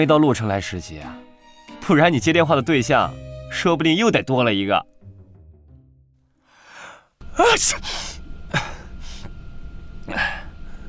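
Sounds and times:
speech: 0.0 - 1.2, 1.8 - 4.9, 7.4 - 8.7
person sneezing: 6.7 - 8.9.

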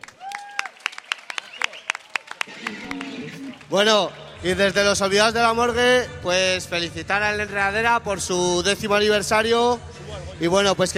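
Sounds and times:
audience applause: 0.0 - 3.8
speech: 3.5 - 10.9.

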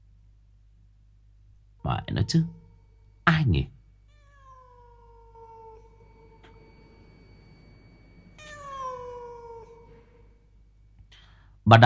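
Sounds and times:
speech: 1.9 - 2.6, 3.3 - 3.8
white cat meowing mournfully: 4.0 - 10.4.

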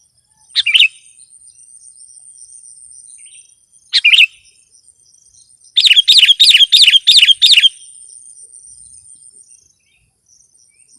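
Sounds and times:
sooty-headed bulbul calling: 5.8 - 7.8.

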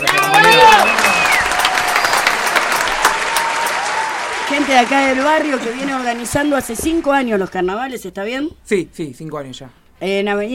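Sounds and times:
crowd audience applause: 0.0 - 7.6
speech: 4.7 - 10.5.

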